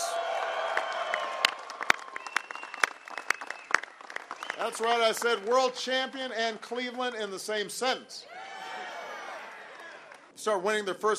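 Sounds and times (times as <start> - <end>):
audience applause at the White House welcoming the Cleveland Cavaliers: 0.0 - 7.0, 8.4 - 10.3
speech: 4.6 - 8.4, 10.4 - 11.1.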